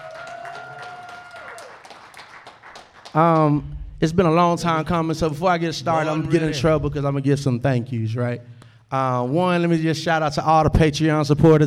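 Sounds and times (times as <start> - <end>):
audience applause: 0.0 - 3.5
speech: 3.1 - 11.6.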